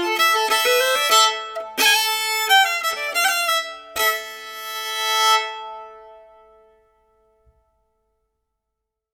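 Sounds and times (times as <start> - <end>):
Swedish polska folk dance tune: 0.0 - 5.6.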